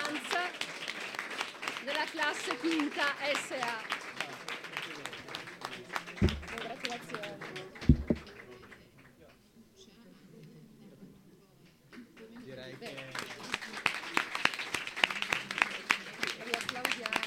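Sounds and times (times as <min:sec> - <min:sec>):
audience applause: 0:00.0 - 0:08.8, 0:12.8 - 0:17.2
speech: 0:02.1 - 0:04.0.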